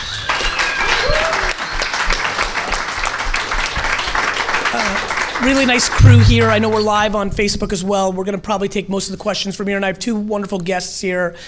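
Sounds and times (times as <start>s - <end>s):
small group clapping: 0.0s - 6.0s
speech: 4.8s - 11.4s.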